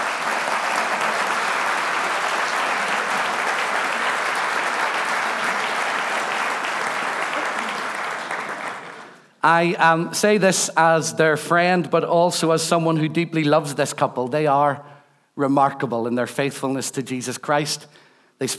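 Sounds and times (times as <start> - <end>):
church congregation applauding visiting Anglican clergy at a morning service: 0.0 - 9.7
speech: 9.4 - 18.5.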